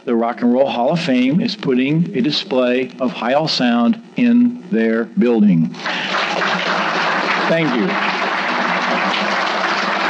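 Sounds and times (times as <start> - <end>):
speech: 0.0 - 6.6, 7.5 - 8.2
audience applause: 5.8 - 10.0.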